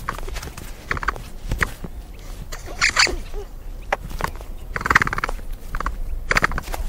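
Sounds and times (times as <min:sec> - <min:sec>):
capybara giving short squeaky harmonic calls: 0:00.1 - 0:01.8, 0:02.5 - 0:03.5, 0:04.2 - 0:06.7.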